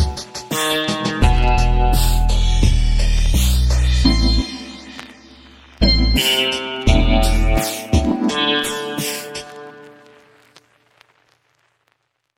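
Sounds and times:
Indian recorder rap: 0:01.2 - 0:09.7.

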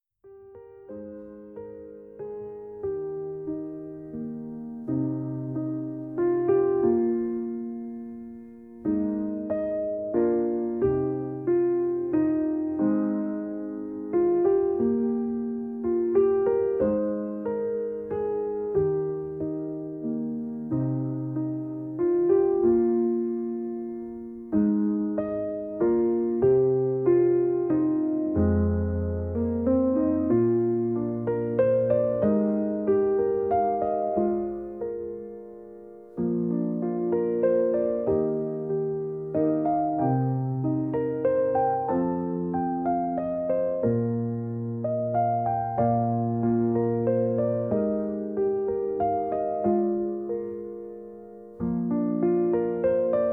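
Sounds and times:
solo piano: 0:00.0 - 0:53.3.

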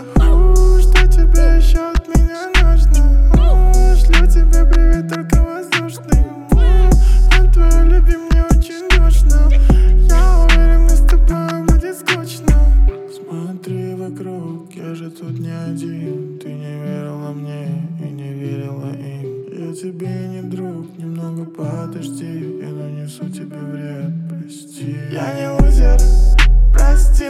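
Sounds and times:
41 44 and 46 Hz low bass tones: 0:00.2 - 0:05.0, 0:06.1 - 0:11.3, 0:12.5 - 0:12.9, 0:25.6 - 0:27.2.

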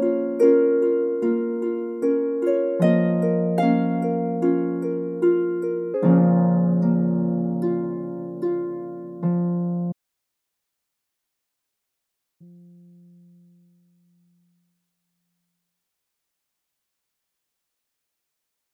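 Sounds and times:
harp music for sleep: 0:00.0 - 0:10.0.

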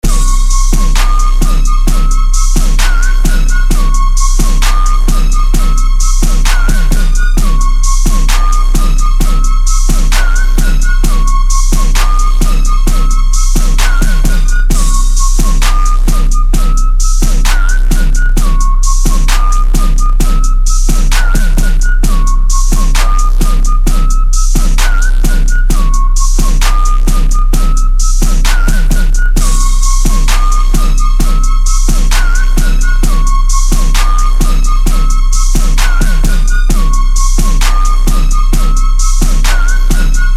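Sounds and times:
32 Hz sine tone: 0:00.0 - 0:40.3.

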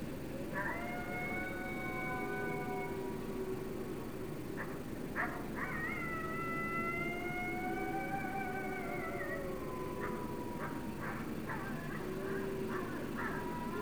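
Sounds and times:
low sustained coyote or wolf howl: 0:00.0 - 0:13.8.

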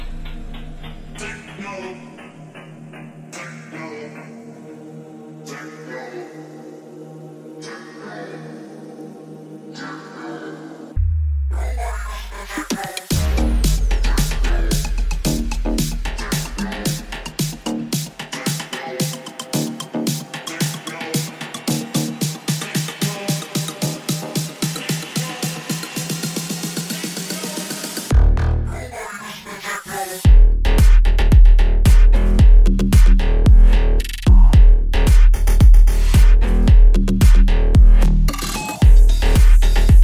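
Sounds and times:
bass: 0:00.0 - 0:02.3, 0:11.0 - 0:18.4, 0:28.1 - 0:29.1, 0:30.2 - 0:40.0.

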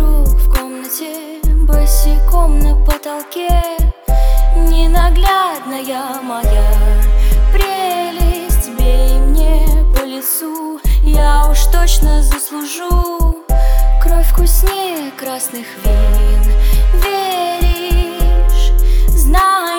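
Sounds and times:
low bass tones at 37, 39 and 41 Hz: 0:00.0 - 0:00.6, 0:01.5 - 0:02.9, 0:03.5 - 0:05.3, 0:06.4 - 0:07.6, 0:08.2 - 0:10.0, 0:10.9 - 0:12.4, 0:13.2 - 0:14.7, 0:15.9 - 0:19.4.

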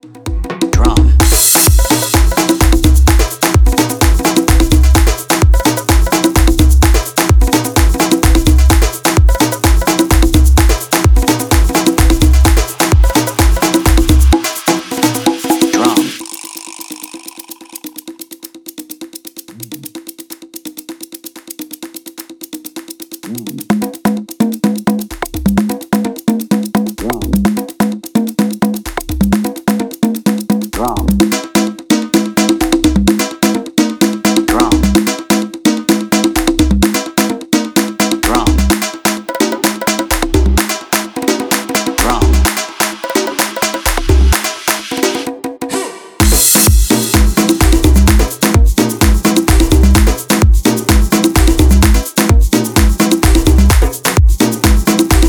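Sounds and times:
drum: 0:00.0 - 0:55.2.

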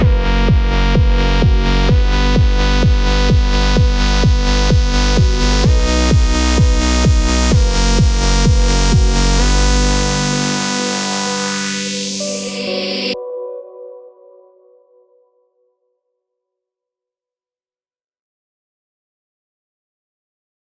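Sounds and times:
electro house music: 0:00.0 - 0:13.2.

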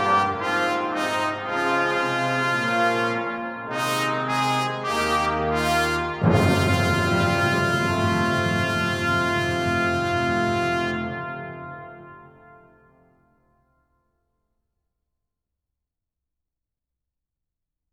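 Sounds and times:
orchestra playing a fanfare: 0:00.0 - 0:12.8.

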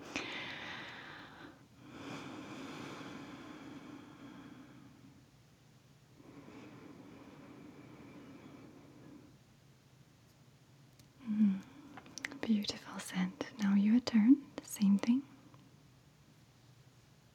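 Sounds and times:
breathing out and breathing in the fragrance of tea: 0:00.0 - 0:05.2, 0:06.2 - 0:09.4, 0:11.2 - 0:13.6
speech: 0:12.5 - 0:13.7.

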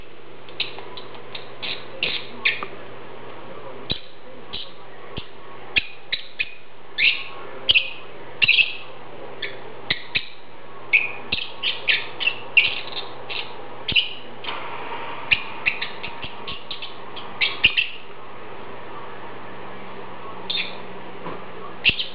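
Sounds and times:
lovebird giving shrill raspy chirps: 0:00.6 - 0:02.7, 0:03.9 - 0:14.3, 0:15.3 - 0:18.1, 0:20.5 - 0:20.9, 0:21.8 - 0:22.1.

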